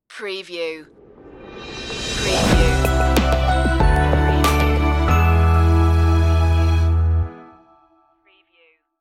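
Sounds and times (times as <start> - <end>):
relaxing ident music: 1.0 - 8.2.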